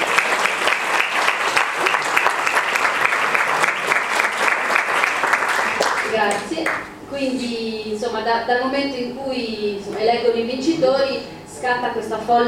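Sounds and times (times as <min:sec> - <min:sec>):
audience applause: 0:00.0 - 0:06.9
speech: 0:06.2 - 0:12.4.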